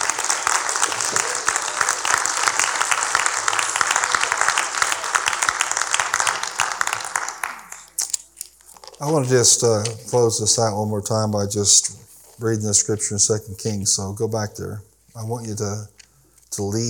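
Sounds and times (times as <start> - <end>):
audience hand clapping: 0.0 - 8.1
speech: 9.0 - 16.8.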